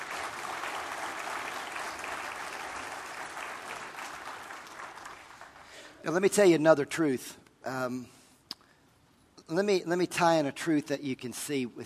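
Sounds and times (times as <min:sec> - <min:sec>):
audience applauding: 0:00.0 - 0:06.0
speech: 0:06.0 - 0:08.2, 0:09.5 - 0:11.8.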